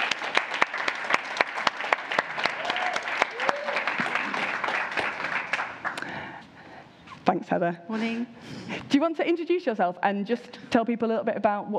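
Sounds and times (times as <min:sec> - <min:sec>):
audience applause: 0:00.0 - 0:06.2
speech: 0:07.3 - 0:11.7.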